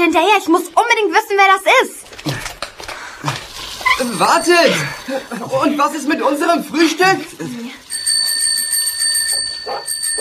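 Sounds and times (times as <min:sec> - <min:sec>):
speech: 0:00.0 - 0:02.4, 0:04.0 - 0:07.9
bicycle bells ringing: 0:03.9 - 0:06.0, 0:07.5 - 0:10.1.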